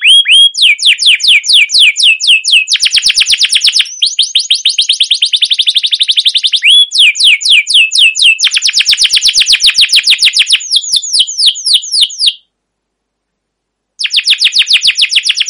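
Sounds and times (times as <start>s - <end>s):
canary singing: 0.0s - 12.5s, 14.0s - 15.4s.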